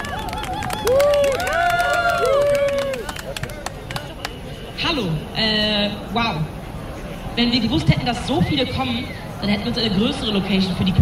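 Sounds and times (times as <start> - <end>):
people whooping and cheering: 0.0 - 4.2
crowd applauding: 0.0 - 4.5
speech: 5.0 - 6.6, 7.4 - 10.9.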